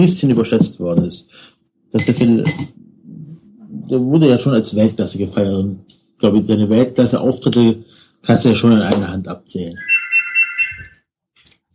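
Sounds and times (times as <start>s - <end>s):
speech: 0.0s - 2.8s, 3.9s - 9.9s
phone ringtone in high-pitched electronic pulses: 9.8s - 11.0s.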